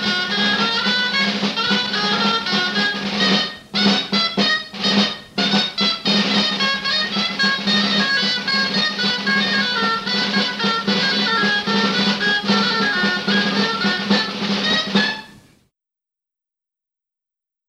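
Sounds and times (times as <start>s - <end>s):
traditional dance music in Valladolid: 0.0s - 15.5s.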